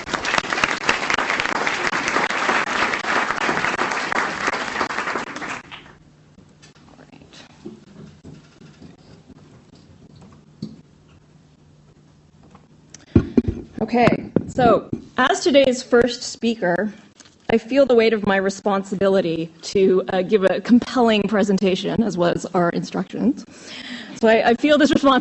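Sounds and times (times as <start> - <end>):
audience applauding: 0.0 - 6.0
speech: 13.9 - 25.1.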